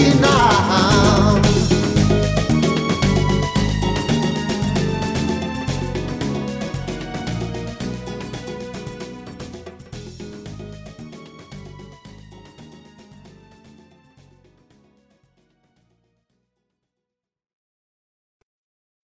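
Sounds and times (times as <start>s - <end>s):
Latin pop music: 0.0s - 14.0s.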